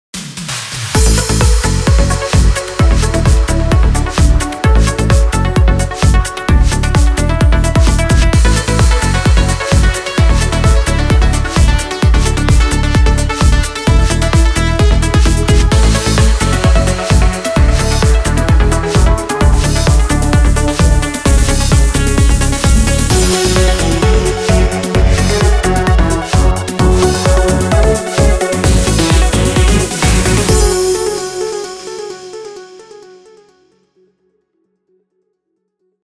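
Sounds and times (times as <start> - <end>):
instrumental music: 1.0 - 33.7.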